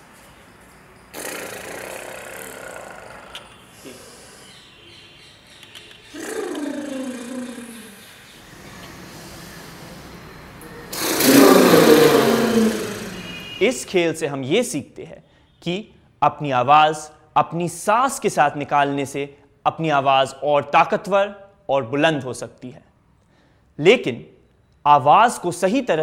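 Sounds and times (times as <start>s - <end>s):
voice imitating a balloon deflating: 1.2s - 4.2s, 6.2s - 8.0s, 10.9s - 13.4s
speech: 13.6s - 22.8s, 23.8s - 26.0s.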